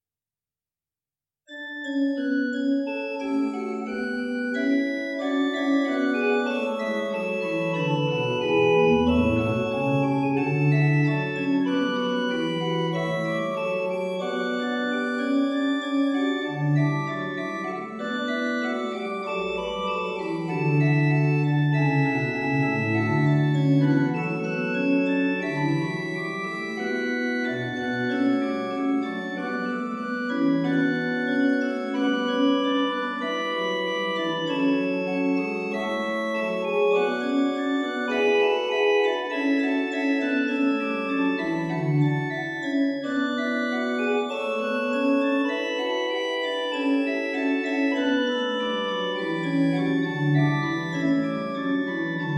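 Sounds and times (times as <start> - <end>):
pipe organ: 1.5 - 52.3.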